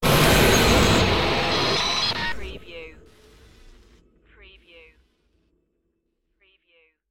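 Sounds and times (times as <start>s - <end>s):
sudden extraterrestrial appearance effect: 0.0s - 5.0s.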